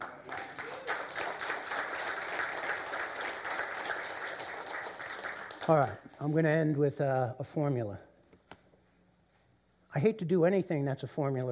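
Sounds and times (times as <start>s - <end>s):
audience applause: 0.0s - 6.2s
speech: 5.7s - 8.1s, 10.0s - 11.4s.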